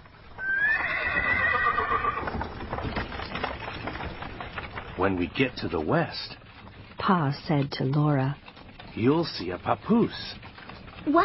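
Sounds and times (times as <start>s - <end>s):
faint rattling of a horse-drawn wagon: 0.0s - 11.2s
hooves of a horse-drawn wagon clip-clopping: 0.0s - 11.2s
horse whinnying: 0.4s - 2.7s
speech: 5.0s - 6.4s, 7.0s - 11.2s.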